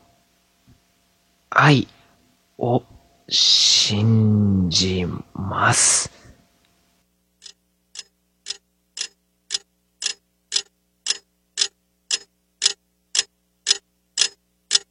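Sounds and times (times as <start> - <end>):
speech: 1.5 - 2.0, 2.6 - 6.2
cheap alarm clock ticking: 7.4 - 14.9.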